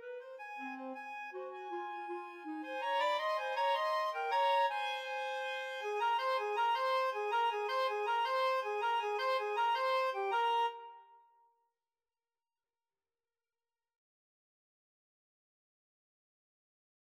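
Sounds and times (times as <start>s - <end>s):
clarinet trio: 0.0s - 11.2s.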